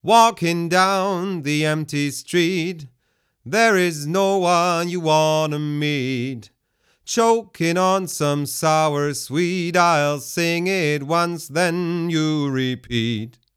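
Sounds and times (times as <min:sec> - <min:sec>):
man singing: 0:00.0 - 0:13.5.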